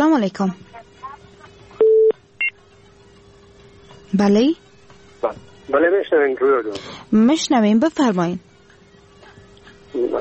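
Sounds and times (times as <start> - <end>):
faint murmur: 0.0 - 10.1
speech: 0.2 - 0.7, 4.1 - 4.6, 5.2 - 8.5
phone tones as a call is cut off: 1.8 - 2.6.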